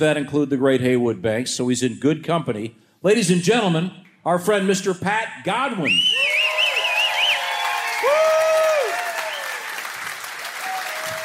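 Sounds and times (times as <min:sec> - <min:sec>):
speech: 0:00.0 - 0:06.4
wavering high whistle: 0:05.8 - 0:09.6
crowd clapping: 0:06.2 - 0:11.2.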